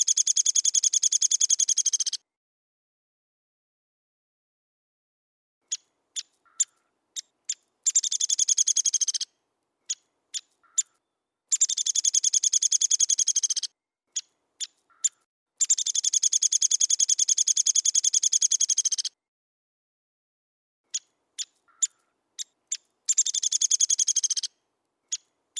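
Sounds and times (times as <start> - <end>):
downy woodpecker calls: 0.0 - 2.2, 5.7 - 19.2, 20.9 - 25.5.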